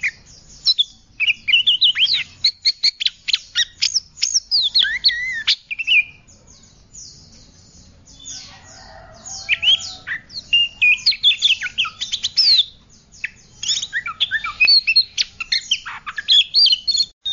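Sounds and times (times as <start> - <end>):
Oriental magpie-robin whistling: 0.0 - 6.2, 8.2 - 17.3.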